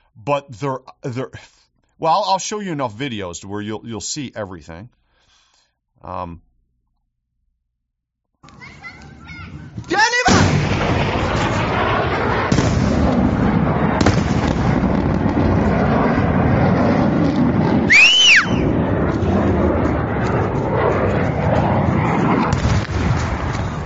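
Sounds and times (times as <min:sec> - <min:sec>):
speech: 0:00.2 - 0:05.0, 0:06.0 - 0:06.5, 0:08.4 - 0:08.9, 0:09.9 - 0:10.2
cruise missile strike explosion roar in a played video: 0:10.2 - 0:23.8
high-pitched whine: 0:17.8 - 0:22.5.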